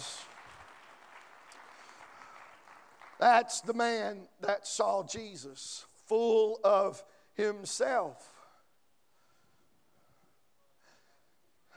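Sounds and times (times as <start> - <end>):
crowd applauding: 0.0 - 3.7
speech: 3.2 - 8.3.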